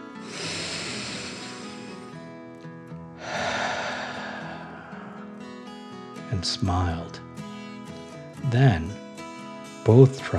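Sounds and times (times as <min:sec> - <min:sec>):
deep breath in and out: 0:00.0 - 0:06.3, 0:07.4 - 0:08.2
speech: 0:06.4 - 0:07.3, 0:08.4 - 0:09.0, 0:09.8 - 0:10.3.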